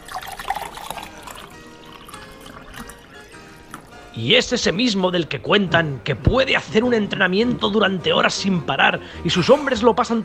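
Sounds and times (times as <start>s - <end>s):
wine pouring into a glass: 0.0s - 4.2s
speech: 4.2s - 10.2s.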